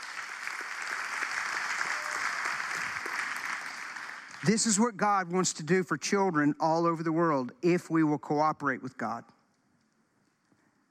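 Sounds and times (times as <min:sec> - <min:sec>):
audience applause: 0:00.0 - 0:05.0
speech: 0:04.4 - 0:09.4.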